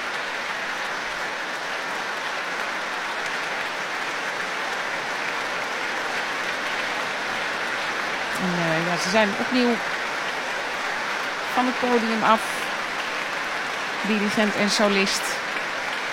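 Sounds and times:
concert hall applause for orchestra: 0.0 - 16.1
speech: 8.4 - 10.0, 11.6 - 12.6, 14.0 - 15.4.

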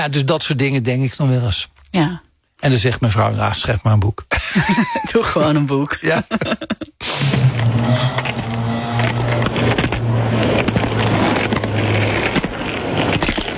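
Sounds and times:
speech: 0.0 - 8.4
laughter: 4.3 - 7.0
roller skate rolling on paving tiles: 7.0 - 13.5.

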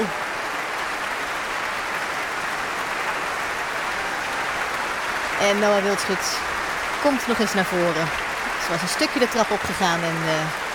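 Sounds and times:
concert audience applause for orchestra: 0.0 - 10.7
speech: 5.4 - 10.6.

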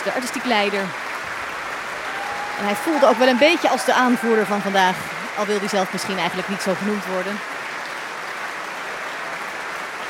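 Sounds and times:
speech: 0.0 - 1.1, 2.6 - 7.5
concert audience applause, standing ovation: 0.0 - 10.0.

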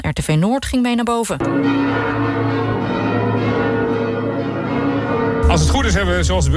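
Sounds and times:
speech: 0.0 - 3.0, 5.5 - 6.5
bells of the Martinitoren ringing: 1.4 - 6.5.

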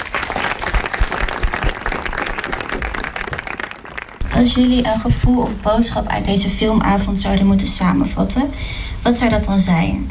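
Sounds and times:
audience applause welcoming guests on stage at a film evening: 0.0 - 4.6
speech: 4.4 - 10.0.

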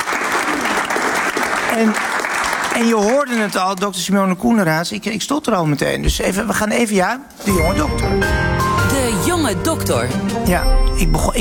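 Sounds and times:
warm audience applause: 0.0 - 3.8
speech: 1.8 - 2.1, 2.8 - 8.4, 9.4 - 11.4.

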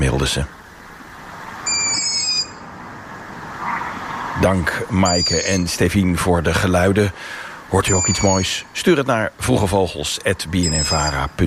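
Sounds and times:
speech: 0.2 - 0.6, 4.4 - 11.4
three young long-eared owls squeaking in a tree: 0.6 - 5.9, 7.2 - 8.8, 10.5 - 11.4.

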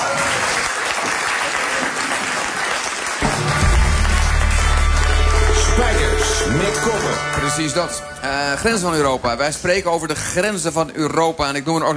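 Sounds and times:
applause: 0.0 - 8.0
speech: 6.5 - 11.9.

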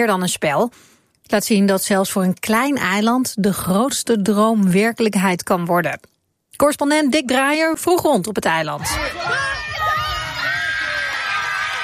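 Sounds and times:
speech: 0.0 - 9.8
mothers cheering and whooping on sideline: 8.9 - 11.8.

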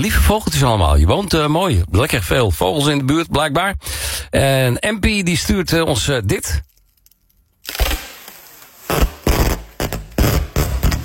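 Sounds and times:
speech: 0.0 - 6.7
packing tape being unrolled: 6.7 - 11.0.

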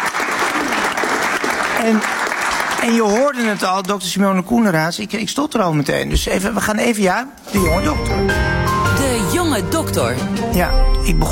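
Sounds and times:
crowd applause: 0.0 - 3.9
speech: 1.8 - 2.2, 2.8 - 8.6, 9.3 - 11.3.

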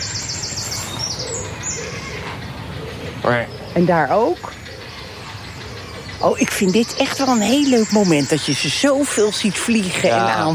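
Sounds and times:
nesting birds calling, almost growling: 0.0 - 10.5
speech: 3.2 - 4.6, 6.2 - 10.5.

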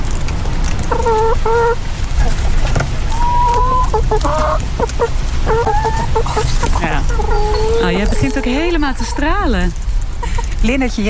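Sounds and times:
happy chicken clucking: 0.9 - 9.4
speech: 4.1 - 11.0.

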